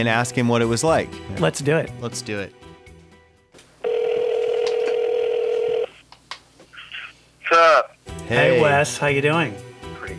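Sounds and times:
speech: 0:00.0 - 0:02.7, 0:07.6 - 0:10.1
phone call ringing tone: 0:03.8 - 0:06.0.

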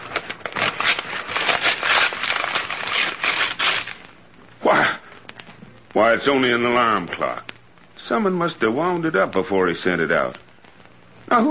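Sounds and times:
package being opened, paper rustling and tearing: 0:00.0 - 0:04.0
speech: 0:06.0 - 0:07.5, 0:08.1 - 0:10.4.

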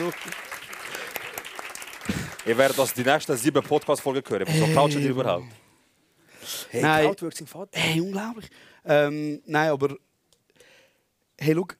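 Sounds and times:
audience applause: 0:00.0 - 0:05.0
speech: 0:00.1 - 0:00.5, 0:02.4 - 0:05.6, 0:06.7 - 0:10.1, 0:11.4 - 0:11.7.

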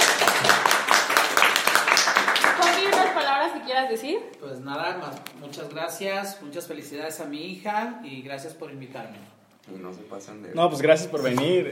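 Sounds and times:
applause: 0:00.0 - 0:03.5
speech: 0:03.8 - 0:11.7.

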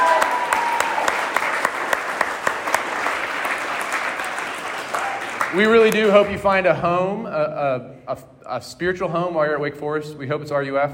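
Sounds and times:
audience clapping for new students: 0:00.0 - 0:06.4
speech: 0:05.5 - 0:10.9.

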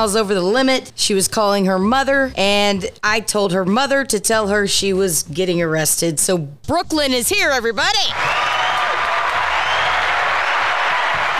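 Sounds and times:
speech: 0:00.0 - 0:08.6
audience clapping: 0:08.1 - 0:11.3.

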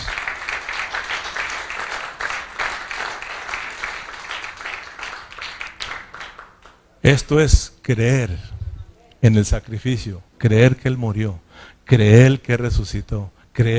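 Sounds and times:
crowd applauding: 0:00.0 - 0:06.9
speech: 0:07.1 - 0:08.5, 0:09.2 - 0:13.7.

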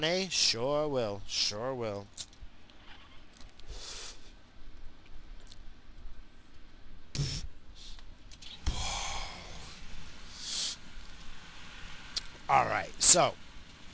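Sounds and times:
speech: 0:00.0 - 0:02.3, 0:12.5 - 0:13.4
person inhaling and exhaling while smoking weed from a pipe: 0:03.6 - 0:04.3, 0:07.1 - 0:08.0, 0:08.6 - 0:10.8.

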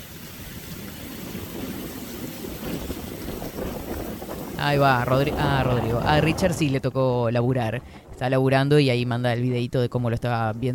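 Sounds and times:
heavy rain: 0:00.0 - 0:08.2
wind: 0:00.0 - 0:10.7
speech: 0:04.6 - 0:10.7.

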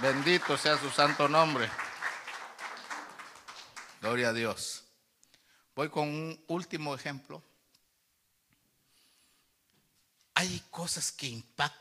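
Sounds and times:
speech: 0:00.0 - 0:01.8, 0:04.0 - 0:04.8, 0:05.8 - 0:07.5, 0:10.4 - 0:11.7
audience clapping hands: 0:00.0 - 0:04.5.

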